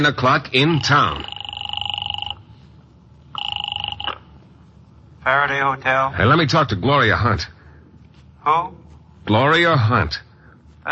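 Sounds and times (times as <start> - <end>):
speech: 0.0 - 1.4, 5.2 - 7.6, 8.4 - 10.2
telephone ringing: 0.6 - 2.6, 3.3 - 4.4.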